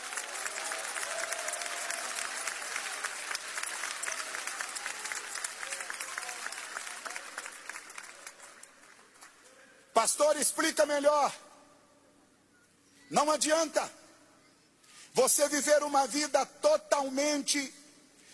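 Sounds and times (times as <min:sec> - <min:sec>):
faint cheers: 0:00.0 - 0:07.5
audience applauding: 0:00.0 - 0:09.5
speech: 0:10.0 - 0:11.4, 0:13.1 - 0:14.0, 0:15.2 - 0:17.8.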